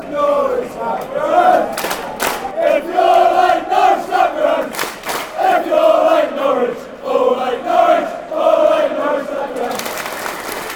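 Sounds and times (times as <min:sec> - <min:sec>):
football fans chanting: 0:00.0 - 0:10.2
people clapping: 0:01.0 - 0:02.6, 0:04.5 - 0:05.6, 0:09.4 - 0:10.7.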